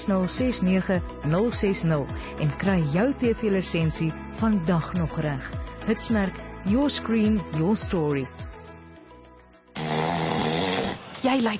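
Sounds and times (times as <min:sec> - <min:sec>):
speech: 0:00.0 - 0:08.5, 0:11.2 - 0:11.5
man snoring loudly: 0:09.7 - 0:11.2.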